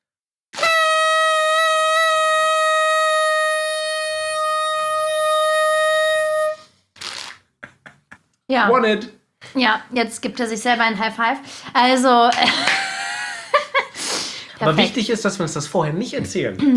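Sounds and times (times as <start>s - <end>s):
toy horn blaring: 0.6s - 6.7s
laughter: 7.6s - 8.3s, 12.3s - 14.0s
speech: 8.5s - 12.8s, 14.6s - 16.7s.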